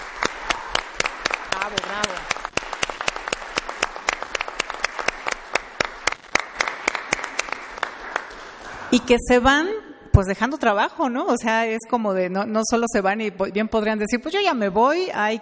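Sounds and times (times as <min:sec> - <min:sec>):
audience applause: 0:00.0 - 0:08.9
speech: 0:01.7 - 0:02.3, 0:08.9 - 0:15.4.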